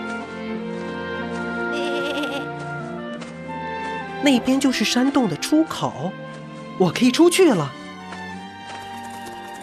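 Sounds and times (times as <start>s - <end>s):
lamb bleating: 1.7s - 2.5s
speech: 4.2s - 6.2s, 6.8s - 7.8s.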